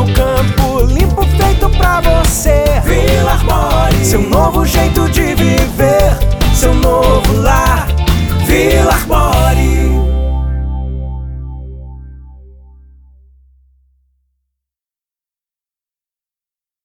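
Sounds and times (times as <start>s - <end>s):
jingle: 0.0s - 11.8s.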